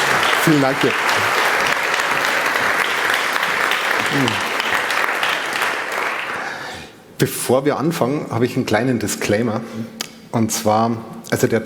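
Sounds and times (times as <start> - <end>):
audience applause: 0.0 - 6.9
speech: 0.4 - 1.3, 4.1 - 4.5, 7.2 - 11.6.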